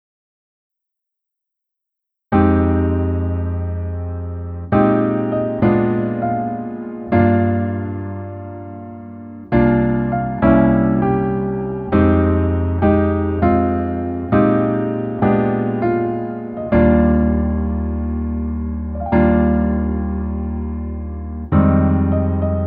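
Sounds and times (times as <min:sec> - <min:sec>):
piano melody accompaniment in male key: 0:02.3 - 0:22.6.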